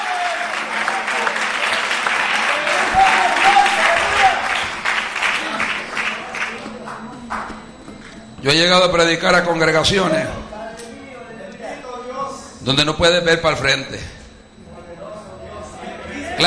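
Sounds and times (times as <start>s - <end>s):
audience applause: 0.0s - 7.6s
speech: 8.4s - 10.4s, 12.7s - 14.2s.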